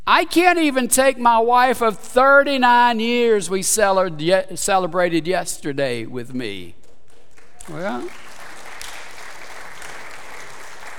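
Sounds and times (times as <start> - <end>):
speech: 0.1 - 6.8, 7.7 - 8.2
congregation applauding at a Sunday morning worship service: 7.1 - 10.9.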